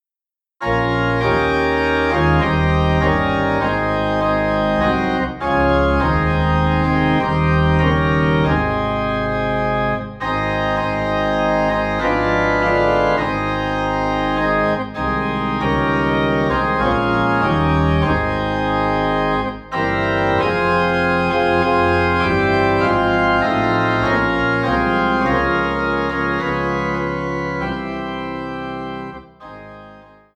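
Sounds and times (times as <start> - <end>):
low organ note in A flat: 0.6 - 30.2.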